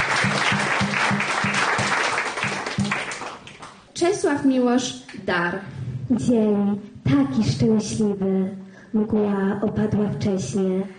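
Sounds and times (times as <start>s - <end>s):
audience applause: 0.0s - 3.8s
speech: 4.0s - 10.9s.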